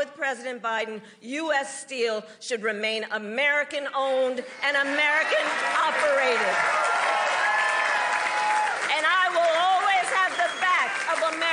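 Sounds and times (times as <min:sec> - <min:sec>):
speech: 0:00.2 - 0:07.2
crowd shouting and whooping: 0:04.6 - 0:09.0, 0:09.7 - 0:11.5
crowd clapping: 0:04.8 - 0:11.5.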